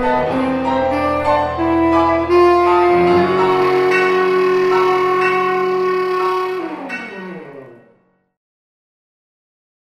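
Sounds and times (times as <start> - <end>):
saxophone: 0.0 - 7.9.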